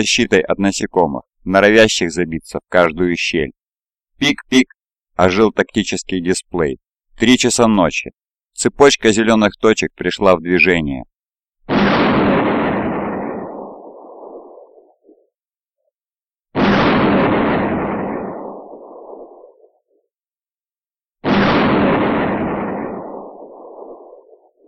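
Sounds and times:
speech: 0.0 - 3.6, 4.2 - 11.1
rapid explosions of high-explosive under-barrel grenade launcher rounds: 11.7 - 15.0, 16.6 - 19.8, 21.2 - 24.6.

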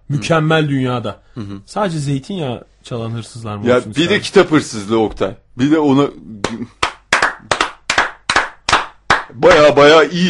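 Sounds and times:
speech: 0.1 - 6.8, 9.4 - 10.2
hand clapping in a studio: 6.4 - 9.9.

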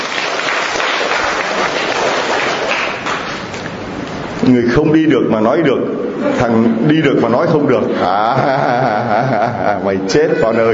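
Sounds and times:
audience applauding a man invited on stage during a sermon: 0.0 - 3.7
speech: 4.5 - 10.7
laughter: 7.7 - 10.7.

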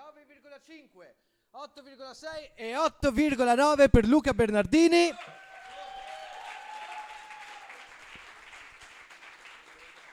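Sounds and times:
speech: 0.6 - 5.4
audience applause: 5.1 - 10.1.

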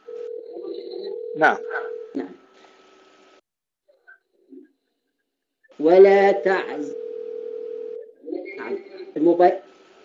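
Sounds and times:
mobile phone ringing: 0.0 - 2.2, 6.8 - 8.2
speech: 1.4 - 2.4, 5.8 - 7.0, 9.2 - 9.6.

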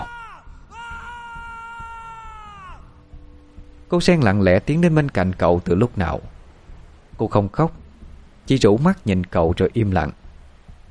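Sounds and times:
man screaming in anguish: 0.0 - 3.0
speech: 3.9 - 6.3, 7.2 - 7.8, 8.5 - 10.2.

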